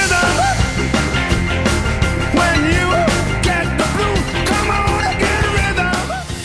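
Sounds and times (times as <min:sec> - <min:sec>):
driving rock and roll band on a record: 0:00.0 - 0:06.4
rock and roll singer yelling and wailing on record: 0:02.3 - 0:06.3.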